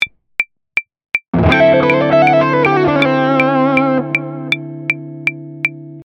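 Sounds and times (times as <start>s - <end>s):
musical lick: 1.4s - 5.8s.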